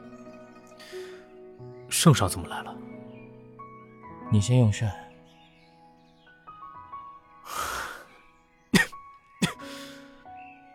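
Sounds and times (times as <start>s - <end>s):
soft sustained musical tones: 0.0s - 10.7s
speech: 2.0s - 2.8s, 4.3s - 5.1s
breathy, rushing exhale: 7.4s - 8.2s, 9.6s - 10.2s
short, sharp stifled coughs from an attempted laugh: 8.7s - 9.7s.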